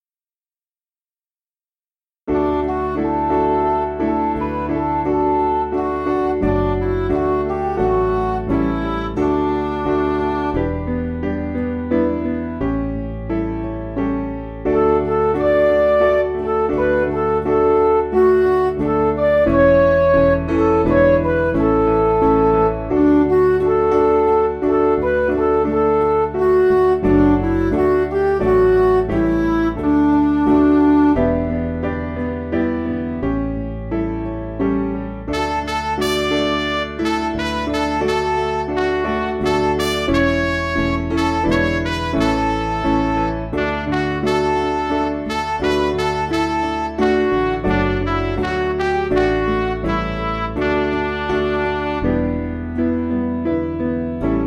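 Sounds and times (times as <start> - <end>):
backing music for churches: 2.3 - 54.4.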